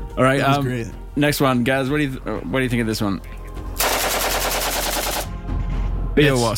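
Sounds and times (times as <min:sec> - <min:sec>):
speech: 0:00.2 - 0:03.4, 0:06.2 - 0:06.5
AK-47 gunfire: 0:03.8 - 0:05.4.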